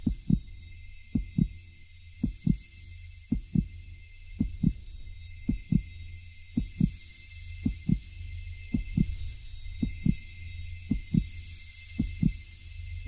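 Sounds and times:
heart beating: 0.0s - 0.5s, 1.2s - 1.6s, 2.2s - 2.6s, 3.3s - 3.7s, 4.4s - 4.8s, 5.5s - 6.0s, 6.6s - 7.0s, 7.6s - 8.1s, 8.7s - 9.2s, 9.8s - 10.2s, 10.9s - 11.3s, 12.0s - 12.4s.

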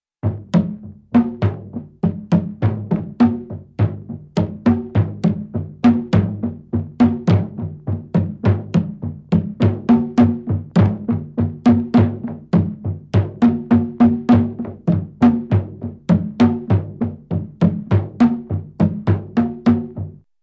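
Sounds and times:
African drum beats: 0.2s - 20.2s.

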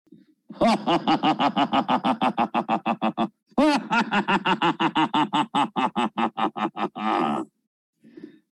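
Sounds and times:
creepy laugh: 0.5s - 7.6s.

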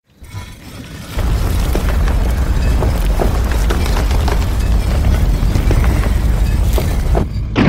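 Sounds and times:
stone door: 0.2s - 7.5s.

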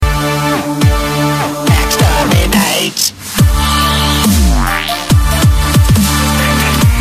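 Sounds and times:
orchestral dubstep remix: 0.0s - 7.0s.

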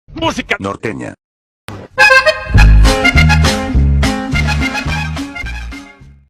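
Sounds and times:
Norteño music: 2.0s - 6.2s.

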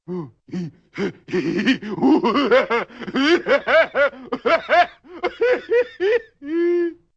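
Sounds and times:
goofy stupid laugh: 1.0s - 7.0s.

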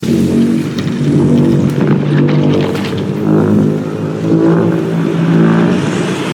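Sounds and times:
thermonuclear explosion: 0.0s - 6.3s.

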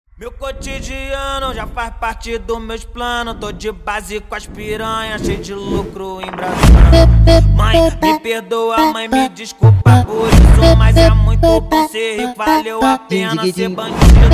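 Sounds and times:
funk music: 6.6s - 8.2s, 9.6s - 14.3s.

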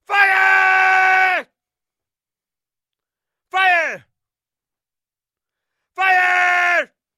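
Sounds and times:
man shouting: 0.0s - 1.5s, 3.5s - 4.1s, 6.0s - 7.0s.

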